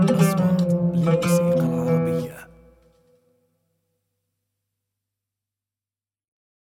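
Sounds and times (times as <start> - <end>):
oud taqsim improvisation: 0.2 - 2.6.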